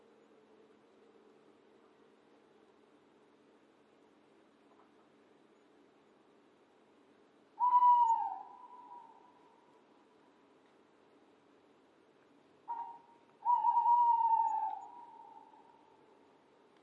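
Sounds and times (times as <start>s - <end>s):
owl hooting: 7.6s - 9.7s, 12.7s - 16.0s.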